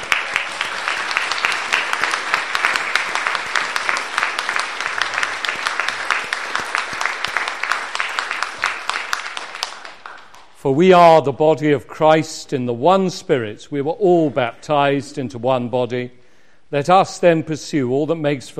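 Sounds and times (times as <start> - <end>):
round of applause: 0.0 - 10.6
speech: 10.6 - 18.5.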